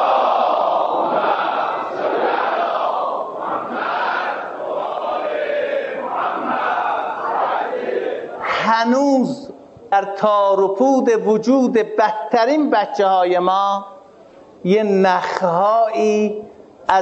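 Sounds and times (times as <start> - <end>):
crowd loudly reciting salawat: 0.0 - 8.6
speech: 10.0 - 13.9, 14.6 - 17.0.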